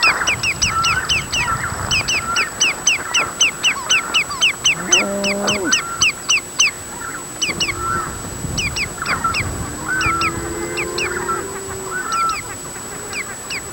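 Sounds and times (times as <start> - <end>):
softer bird calls and low chattering: 0.2 - 13.7
faint steady hum: 4.4 - 13.7
bird descending double notes: 7.4 - 13.3.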